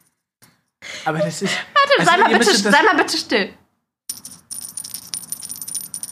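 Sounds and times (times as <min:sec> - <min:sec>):
speech: 0:01.0 - 0:03.6
laughter: 0:01.1 - 0:03.3
tiny bell jingling: 0:04.1 - 0:06.1.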